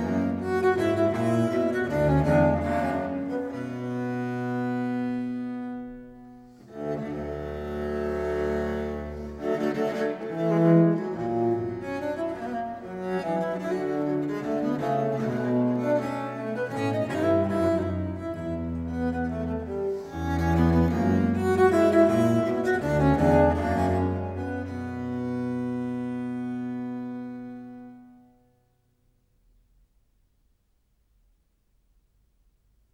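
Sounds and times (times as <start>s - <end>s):
duo for two bass viols in C major: 0.0s - 28.2s.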